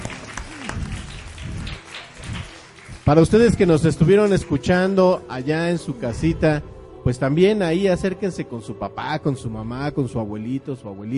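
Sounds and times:
audience applause: 0:00.0 - 0:04.9
speech: 0:03.1 - 0:11.1.

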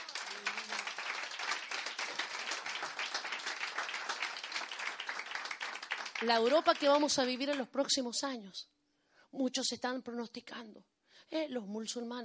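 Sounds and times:
audience applause: 0:00.0 - 0:07.6
speech: 0:06.2 - 0:12.2.

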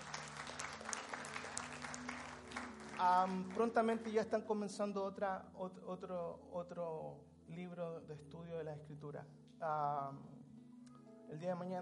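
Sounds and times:
audience applause: 0:00.0 - 0:04.1
speech: 0:03.0 - 0:10.4, 0:11.3 - 0:11.7.

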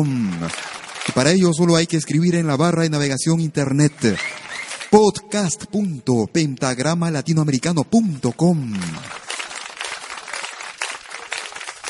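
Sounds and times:
applause: 0:00.0 - 0:02.2, 0:03.7 - 0:05.0, 0:08.1 - 0:11.8
speech: 0:00.0 - 0:09.2.

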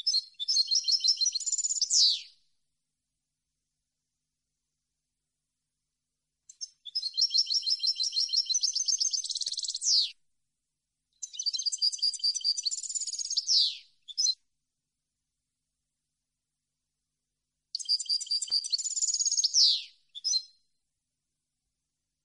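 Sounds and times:
European goldfinch singing: 0:00.0 - 0:02.5, 0:06.4 - 0:10.2, 0:11.1 - 0:14.4, 0:17.7 - 0:20.8.

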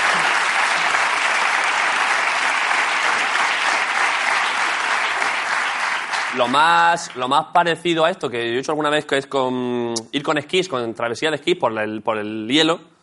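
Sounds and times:
audience applause: 0:00.0 - 0:07.2
speech: 0:06.4 - 0:12.9.

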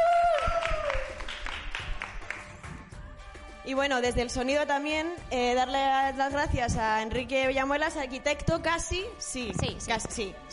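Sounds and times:
applause: 0:00.0 - 0:02.8
speech: 0:03.7 - 0:10.5.

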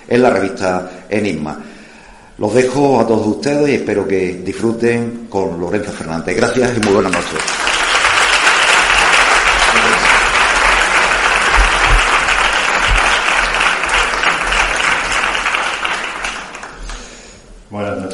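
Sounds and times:
speech: 0:00.0 - 0:01.7, 0:02.4 - 0:07.6
audience applause: 0:06.8 - 0:17.1.

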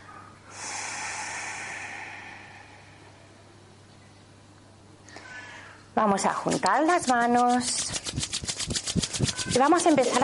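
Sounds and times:
deep exhale during a guided breathing exercise: 0:00.4 - 0:03.6
speech: 0:06.0 - 0:08.2, 0:09.6 - 0:10.2.

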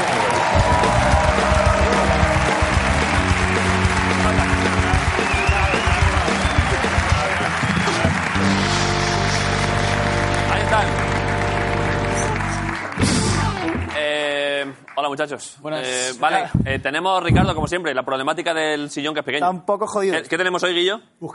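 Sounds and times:
studio audience applause: 0:00.0 - 0:15.0
speech: 0:15.1 - 0:21.3.

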